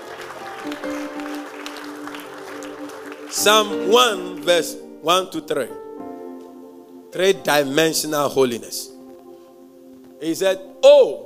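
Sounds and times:
audience clapping: 0:00.0 - 0:04.6
speech: 0:00.6 - 0:01.7, 0:03.3 - 0:05.8, 0:07.1 - 0:08.9, 0:10.2 - 0:11.2.

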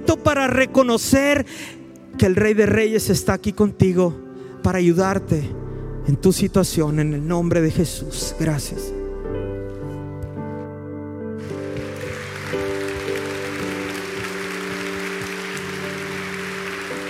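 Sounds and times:
speech: 0:00.1 - 0:09.4
audience applause: 0:11.4 - 0:17.0.

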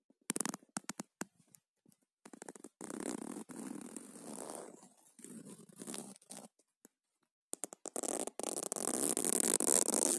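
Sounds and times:
zipper pulled in bursts: 0:02.3 - 0:06.5, 0:07.6 - 0:10.1.

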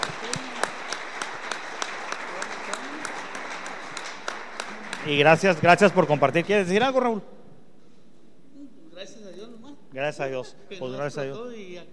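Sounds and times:
audience applauding: 0:00.0 - 0:06.8
speech: 0:05.1 - 0:07.4, 0:09.9 - 0:11.9.

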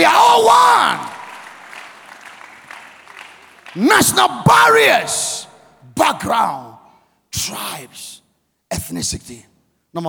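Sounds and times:
audience clapping: 0:00.0 - 0:04.9
speech: 0:03.8 - 0:05.3, 0:06.0 - 0:06.7, 0:07.3 - 0:10.0.

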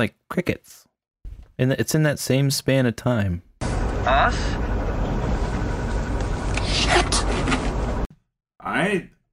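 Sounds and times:
speech: 0:00.0 - 0:00.9, 0:01.6 - 0:04.8, 0:08.8 - 0:09.2
car engine rumbling: 0:03.6 - 0:08.1.

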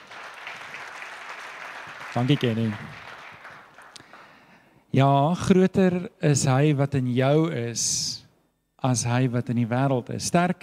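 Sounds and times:
audience applause: 0:00.0 - 0:04.4
speech: 0:02.1 - 0:03.0, 0:04.9 - 0:08.2, 0:08.8 - 0:10.6.

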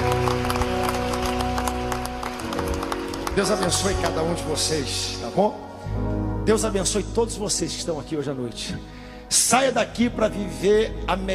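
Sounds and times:
crowd applauding: 0:00.0 - 0:05.2
speech: 0:03.4 - 0:11.3.

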